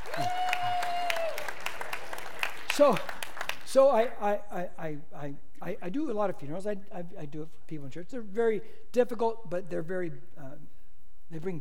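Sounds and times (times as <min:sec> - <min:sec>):
audience clapping: 0:00.0 - 0:04.0
speech: 0:02.8 - 0:11.6.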